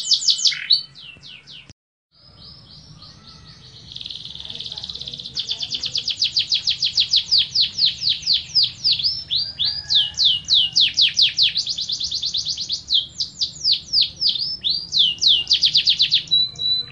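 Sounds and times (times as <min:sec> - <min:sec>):
Atlantic canary singing: 0:00.0 - 0:16.9.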